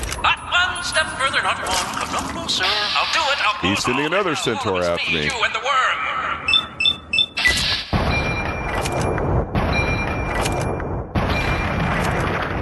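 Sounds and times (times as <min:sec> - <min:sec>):
speech: 0:00.9 - 0:06.0
short electronic beeps: 0:06.5 - 0:11.8
gunfire in a video game battle: 0:07.7 - 0:12.6.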